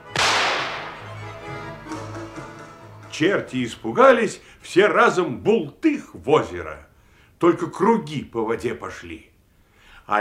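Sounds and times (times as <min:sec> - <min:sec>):
shotgun blast: 0:00.1 - 0:01.3
speech: 0:03.2 - 0:09.3.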